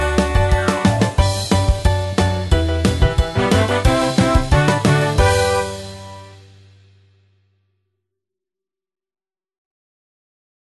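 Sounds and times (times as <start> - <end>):
1960s twist music: 0.0 - 7.0.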